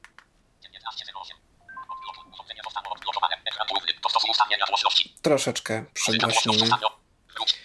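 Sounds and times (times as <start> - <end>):
rapid synthetic screen-reader speech: 0.6 - 1.4, 2.0 - 5.1, 6.0 - 7.5
phone unlocking with short electronic beeps: 1.6 - 2.5
speech: 4.6 - 7.0.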